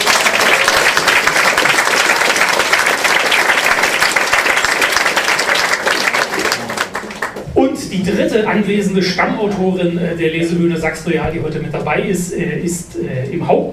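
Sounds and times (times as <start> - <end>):
audience applause at a live reading stage show: 0.0 - 7.5
speech: 8.0 - 13.7.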